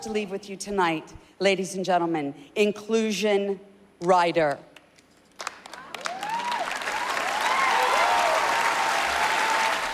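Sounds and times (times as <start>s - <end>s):
speech: 0.0s - 4.7s
audience applause at awards ceremony: 5.4s - 9.9s.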